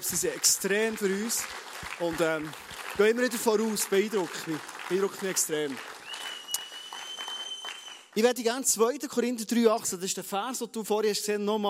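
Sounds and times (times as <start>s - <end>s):
speech: 0.0s - 6.0s, 8.2s - 11.6s
audience applause: 0.0s - 8.2s.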